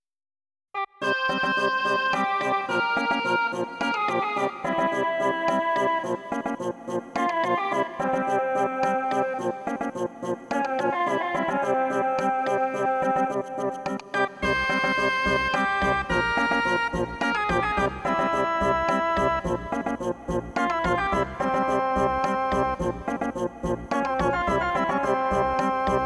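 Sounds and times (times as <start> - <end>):
Persian dance music: 1.1 - 26.0.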